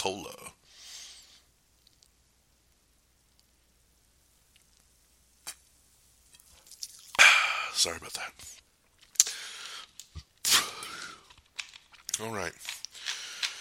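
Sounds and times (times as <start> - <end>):
speech: 0.0 - 0.4, 7.8 - 8.7, 12.2 - 12.8
person sipping a drink: 6.5 - 7.8, 9.0 - 13.5.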